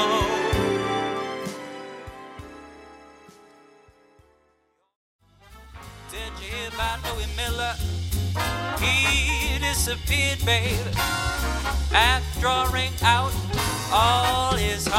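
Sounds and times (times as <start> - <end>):
jazz singer singing: 0.0 - 1.2, 6.0 - 14.9
backing track music: 0.0 - 14.9.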